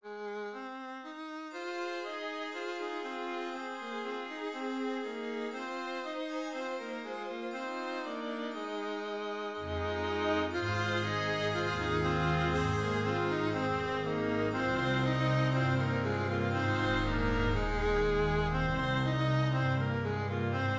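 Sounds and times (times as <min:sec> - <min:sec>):
oriental music: 0:01.5 - 0:20.7.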